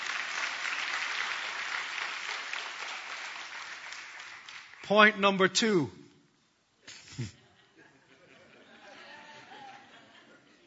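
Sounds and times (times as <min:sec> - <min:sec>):
audience clapping hands: 0:00.0 - 0:05.1
speech: 0:04.9 - 0:06.0, 0:07.2 - 0:07.4
laughter: 0:06.9 - 0:10.6.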